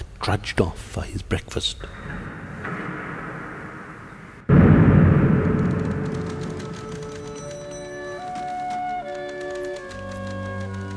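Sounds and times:
speech: 0.2s - 2.2s
big iron gates clanging shut: 1.9s - 9.0s.

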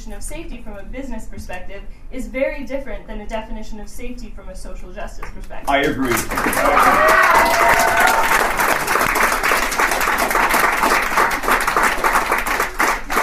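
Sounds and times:
speech: 0.0s - 8.0s
crowd applause: 5.9s - 13.2s
person whooping: 6.5s - 8.7s.

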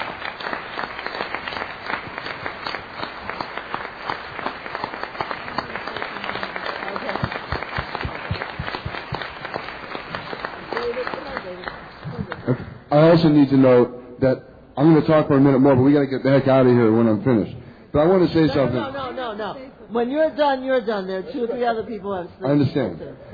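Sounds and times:
meeting audience applause: 0.0s - 12.6s
speech: 13.0s - 23.3s.

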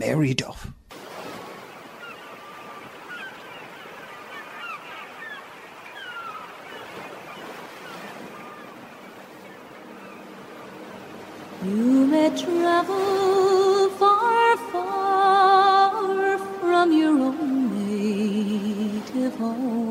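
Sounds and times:
speech: 0.0s - 0.8s
sea waves rolling against cliffs of Doneen: 0.9s - 19.8s
faint bird cries: 1.6s - 10.2s.

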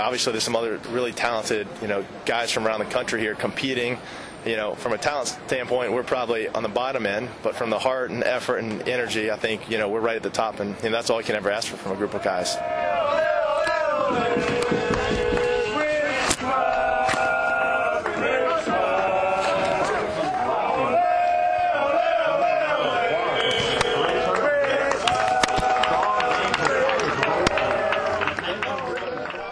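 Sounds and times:
speech: 0.0s - 12.8s, 14.1s - 14.7s
crowd of supporters singing: 12.6s - 28.6s.

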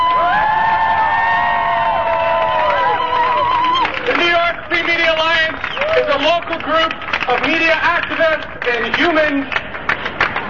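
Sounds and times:
drawn-out whoops and high shouts: 0.0s - 4.1s, 5.6s - 6.2s
crowd applause: 0.0s - 10.4s
speech: 6.2s - 9.6s.

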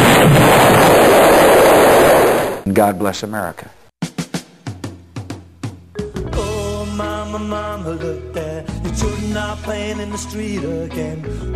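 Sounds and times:
bombing explosions: 0.0s - 2.7s
speech: 2.7s - 3.8s, 9.0s - 11.5s.

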